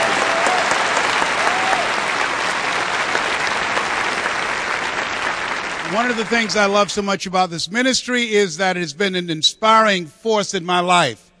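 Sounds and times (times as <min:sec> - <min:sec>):
audience applause welcoming a guest speaker at a ministry gathering: 0:00.0 - 0:07.0
speech: 0:05.9 - 0:11.2.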